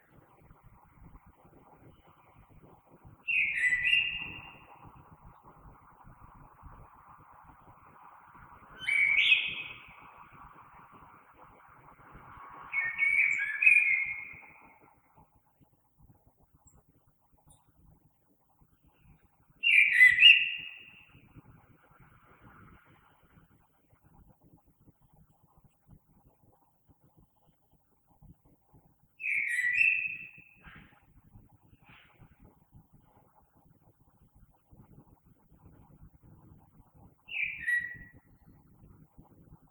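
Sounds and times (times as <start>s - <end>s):
common blackbird singing: 3.3s - 4.7s, 8.8s - 9.9s, 12.7s - 14.6s, 19.6s - 21.0s, 29.2s - 30.6s, 37.3s - 38.2s.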